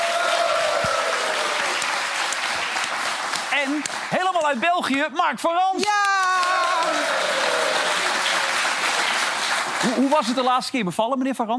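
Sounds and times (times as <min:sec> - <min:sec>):
studio audience applause: 0:00.0 - 0:04.6, 0:05.8 - 0:10.7
speech: 0:03.6 - 0:06.1, 0:09.8 - 0:11.5.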